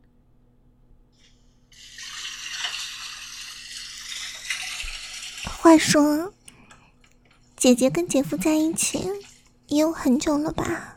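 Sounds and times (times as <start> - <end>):
tap water running: 1.7 - 10.5
speech: 5.6 - 6.4, 7.6 - 10.9.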